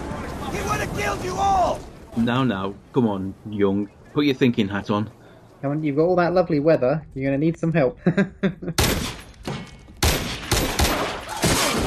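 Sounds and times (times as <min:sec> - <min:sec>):
speech: 0:00.6 - 0:09.1
burst of gunfire aimed at a man: 0:10.0 - 0:11.8.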